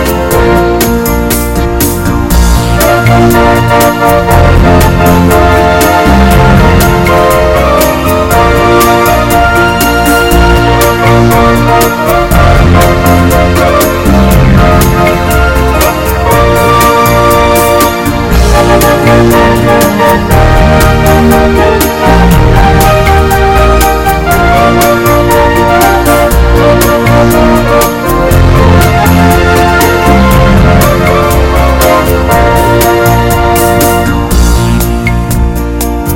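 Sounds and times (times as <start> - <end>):
beautiful ballad: 0.0 - 36.1.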